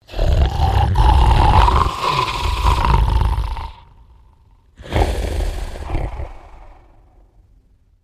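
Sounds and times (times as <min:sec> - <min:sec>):
sleeping giant character snoring: 0:00.0 - 0:07.3.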